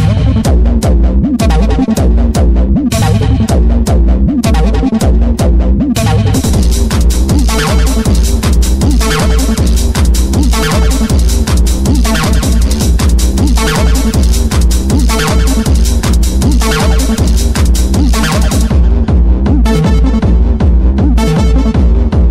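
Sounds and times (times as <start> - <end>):
bass: 0.0 - 22.2.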